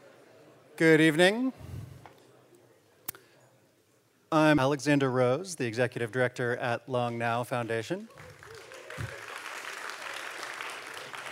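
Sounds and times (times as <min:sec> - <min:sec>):
speech: 0:00.8 - 0:01.6, 0:04.3 - 0:08.3
audience applause: 0:08.1 - 0:11.3.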